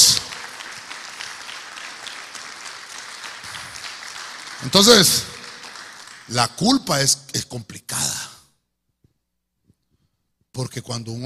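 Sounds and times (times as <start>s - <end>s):
audience clapping: 0.0s - 7.1s
speech: 4.6s - 5.3s, 6.3s - 7.9s, 10.8s - 11.2s.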